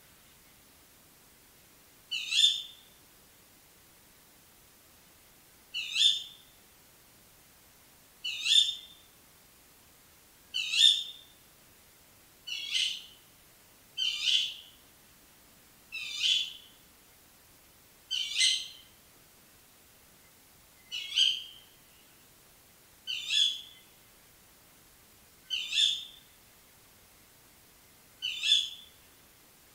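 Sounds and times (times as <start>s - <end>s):
tawny owl calling: 2.1s - 2.9s, 5.8s - 6.4s, 8.2s - 9.0s, 10.6s - 11.2s, 12.5s - 13.2s, 14.0s - 14.7s, 15.9s - 16.7s, 18.1s - 18.9s, 20.9s - 21.8s, 23.1s - 23.8s, 25.5s - 26.3s, 28.2s - 29.0s.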